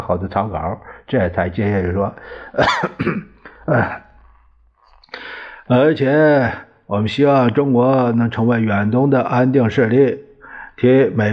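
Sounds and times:
speech: 0.1s - 4.0s, 5.1s - 11.3s
harsh throaty coughs: 2.4s - 5.0s.

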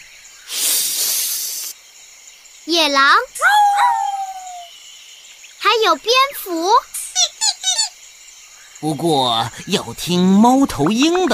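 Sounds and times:
python hissing: 0.4s - 1.8s
speech: 2.6s - 4.0s, 5.6s - 6.9s, 8.8s - 11.3s.

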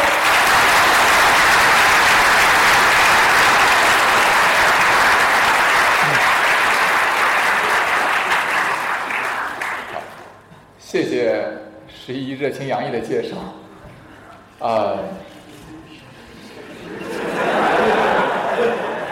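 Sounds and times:
audience applause: 0.0s - 10.4s
speech: 12.1s - 13.6s, 14.6s - 15.2s
laughter: 16.2s - 19.1s.

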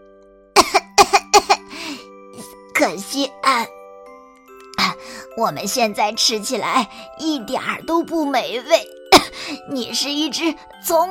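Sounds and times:
hoarse loud coughing: 0.6s - 1.7s, 9.1s - 9.5s
speech: 2.8s - 3.8s, 5.4s - 8.9s, 9.5s - 11.0s.

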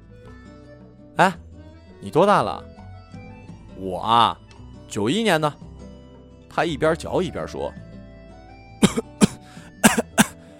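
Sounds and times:
speech: 1.2s - 1.4s, 2.0s - 2.7s, 3.8s - 5.6s, 6.5s - 7.8s
person coughing after choking on smoke: 8.8s - 10.4s.

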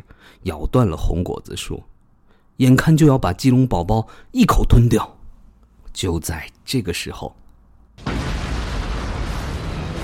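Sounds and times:
speech: 0.3s - 1.9s, 2.6s - 5.2s, 6.0s - 7.4s
violent earthquake rumbling ground: 8.0s - 10.0s.

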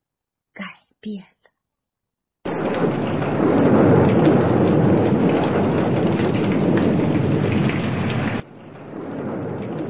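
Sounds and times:
speech: 1.0s - 1.4s
deep thunder rumbling: 2.4s - 9.8s
heavy rain: 2.5s - 9.8s.

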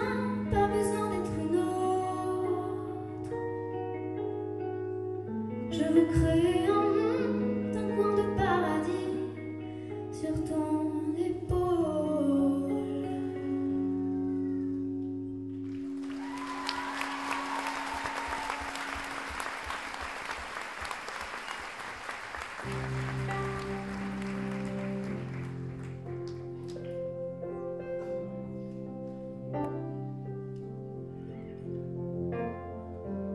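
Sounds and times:
piano notes and chords: 0.0s - 20.4s, 22.3s - 33.3s
speech: 6.0s - 6.4s
audience applause: 15.6s - 26.8s.

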